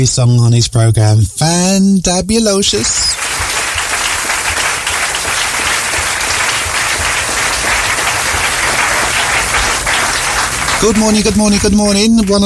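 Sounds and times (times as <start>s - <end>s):
speech: 0.0s - 3.2s, 10.8s - 12.4s
crowd applause: 3.1s - 12.4s.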